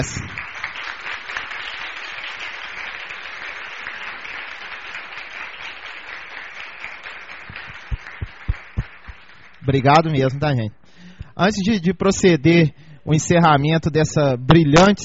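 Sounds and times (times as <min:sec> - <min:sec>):
speech: 0:00.0 - 0:00.4, 0:09.7 - 0:10.8, 0:11.4 - 0:15.0
audience applause: 0:00.0 - 0:10.1.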